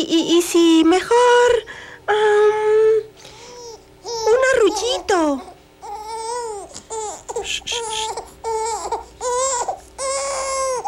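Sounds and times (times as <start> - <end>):
speech: 0.0 - 3.1, 4.6 - 5.5, 7.5 - 8.3
baby crying: 3.5 - 10.8.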